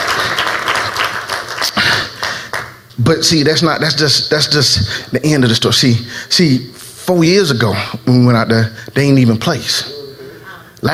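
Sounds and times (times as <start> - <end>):
crowd clapping: 0.0 - 2.8
speech: 3.0 - 10.0.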